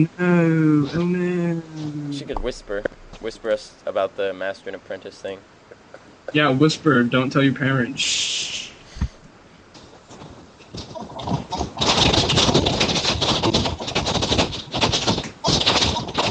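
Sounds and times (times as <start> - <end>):
speech: 0.0 - 5.6, 6.3 - 8.7
angry fast typing on keyboard: 10.7 - 16.3.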